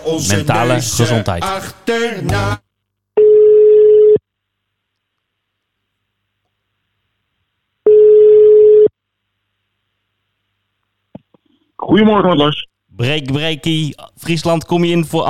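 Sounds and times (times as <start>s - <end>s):
speech: 0.0s - 2.6s, 11.9s - 15.2s
phone line ringback tone while placing a call: 3.2s - 4.2s, 7.9s - 8.9s.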